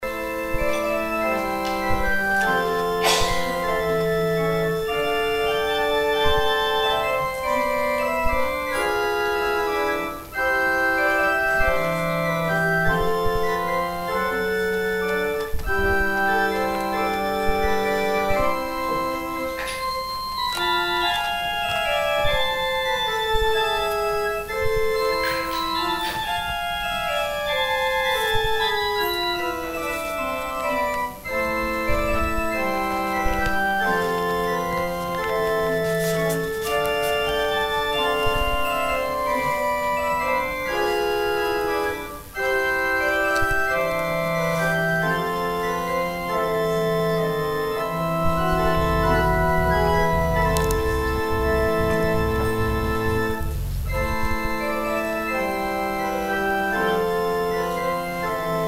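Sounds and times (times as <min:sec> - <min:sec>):
organ interlude: 0:00.0 - 0:58.6.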